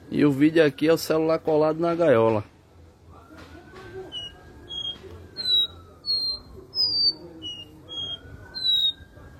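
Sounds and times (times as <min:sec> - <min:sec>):
speech: 0:00.1 - 0:02.5
copper seedeater singing high whistles: 0:03.8 - 0:09.3.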